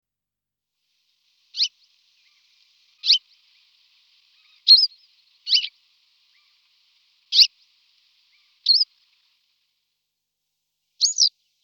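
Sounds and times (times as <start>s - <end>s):
Western yellow wagtail calls, Motacilla flava: 1.5s - 9.6s, 11.0s - 11.3s.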